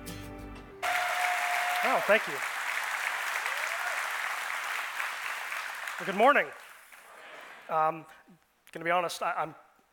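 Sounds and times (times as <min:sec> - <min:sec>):
faint whistle or cheer: 0:00.8 - 0:02.2
crowd applauding: 0:00.8 - 0:07.6
speech: 0:01.9 - 0:02.5, 0:06.0 - 0:06.6, 0:07.7 - 0:09.6.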